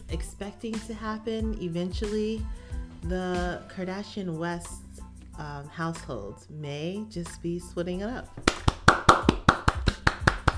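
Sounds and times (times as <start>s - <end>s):
speech: 0.1s - 4.8s, 5.4s - 8.6s
hand clapping: 8.4s - 10.5s.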